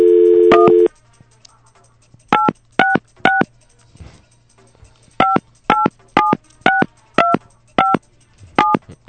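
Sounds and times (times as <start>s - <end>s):
dial tone: 0.0s - 0.9s
telephone number dialed as touch tones: 0.0s - 0.9s, 5.2s - 8.0s, 8.6s - 8.8s.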